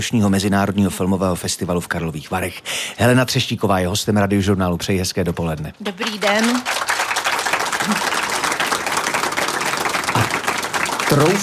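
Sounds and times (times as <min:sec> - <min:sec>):
speech: 0:00.0 - 0:06.9, 0:11.1 - 0:11.4
audience applause outside an airstream: 0:05.8 - 0:11.4.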